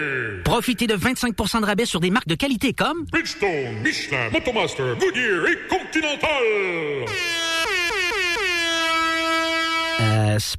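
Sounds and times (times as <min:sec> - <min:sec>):
speech: 0:00.0 - 0:07.5, 0:10.4 - 0:10.5
air horn blast: 0:07.1 - 0:10.4.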